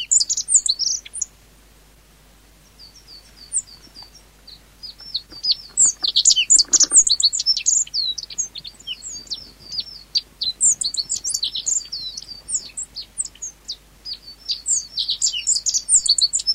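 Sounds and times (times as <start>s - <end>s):
Ecioides birdsong: 0.0s - 1.4s, 2.4s - 16.5s.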